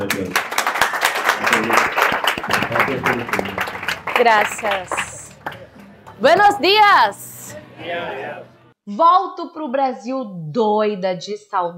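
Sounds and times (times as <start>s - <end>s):
speech: 0.0s - 0.5s, 4.2s - 5.0s, 6.2s - 7.2s, 7.8s - 11.7s
audience applause: 0.0s - 6.8s
crowd voices: 2.5s - 8.8s.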